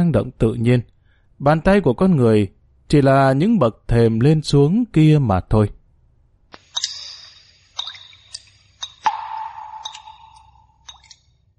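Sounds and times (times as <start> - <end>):
speech: 0.0 - 5.8
water dripping from the ceiling of an underground cave: 6.6 - 11.5.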